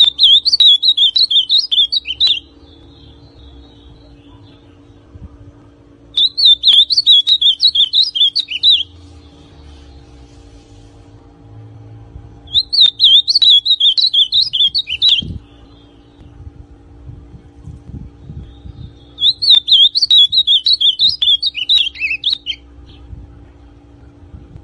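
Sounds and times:
ultramarine grosbeak song: 0.0 - 5.0, 6.1 - 10.1, 12.4 - 16.3, 18.2 - 23.1.

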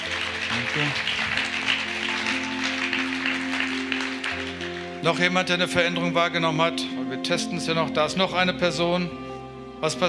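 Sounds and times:
church congregation applauding during a healing service: 0.0 - 6.2
sustained keyboard chords: 0.0 - 10.0
speech: 0.7 - 1.1, 5.0 - 9.2, 9.8 - 10.0.

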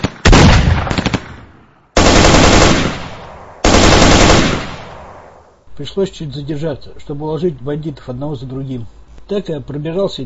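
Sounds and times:
gunfire from two sawed-off shotguns: 0.0 - 5.3
speech: 5.8 - 10.2.

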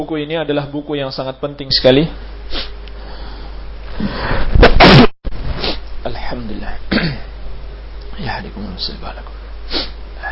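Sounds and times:
speech: 0.0 - 2.7, 6.0 - 7.3, 8.2 - 10.3
sneeze: 4.6 - 5.8.

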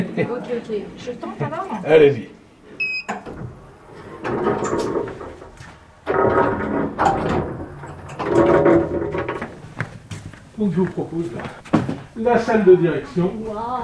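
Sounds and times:
speech: 0.0 - 2.4, 4.2 - 5.4, 10.6 - 13.8
airlock doors sliding open and shut with grinding whoosh: 3.4 - 9.7.

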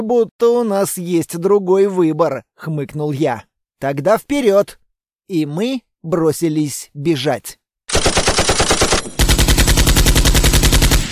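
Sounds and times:
speech: 0.0 - 7.6
heavy machine gun fire: 7.9 - 11.1.

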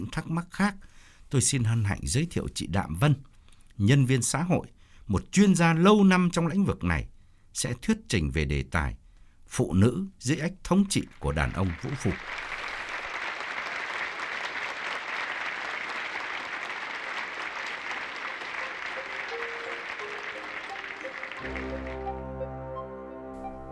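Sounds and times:
speech: 0.0 - 12.5
audience applause at a talk on women under abusive men: 11.2 - 22.3.

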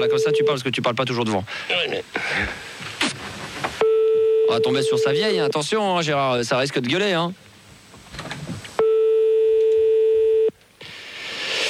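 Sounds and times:
speech: 0.0 - 2.7, 4.5 - 7.4
telephone line ringback tone, call unanswered: 3.8 - 5.5, 8.8 - 10.5.

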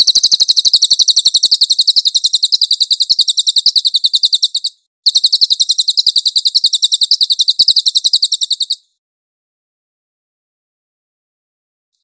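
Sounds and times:
cililin singing a high dense rattle: 0.0 - 9.0.

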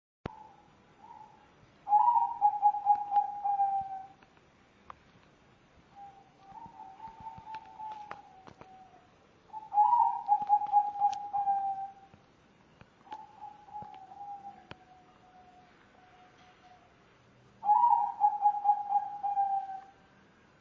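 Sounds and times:
spotted dove cooing: 0.3 - 4.2, 6.0 - 12.1, 13.1 - 16.9, 17.6 - 20.0.

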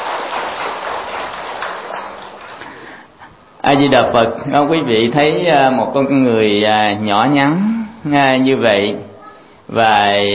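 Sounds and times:
audience applause: 0.0 - 3.0
speech: 3.7 - 9.1, 9.7 - 10.3.

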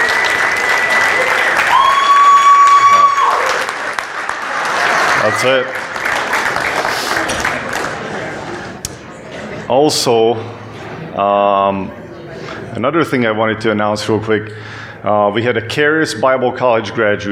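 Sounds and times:
audience round of applause: 0.0 - 8.8
speech: 5.3 - 5.8, 9.7 - 10.6, 11.2 - 12.0, 12.8 - 17.3.

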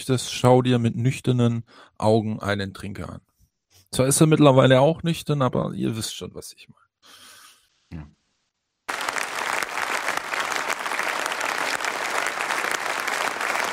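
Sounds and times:
speech: 0.0 - 3.3, 3.9 - 7.2, 7.9 - 8.2
audience applauding: 8.9 - 13.7.

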